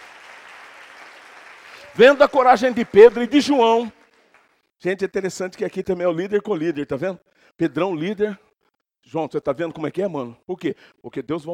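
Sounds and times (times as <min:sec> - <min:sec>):
audience applause: 0:00.0 - 0:04.6
speech: 0:02.0 - 0:04.0, 0:04.8 - 0:08.4, 0:09.0 - 0:11.5.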